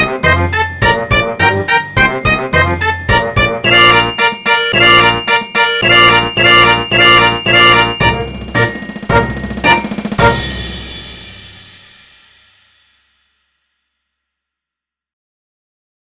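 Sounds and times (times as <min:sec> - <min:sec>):
march music: 0:00.0 - 0:11.8.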